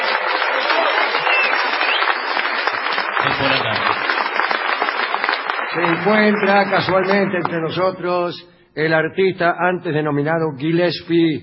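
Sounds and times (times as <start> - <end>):
audience applause and ovation: 0.0 - 7.9
speech: 3.4 - 3.9, 5.8 - 11.4.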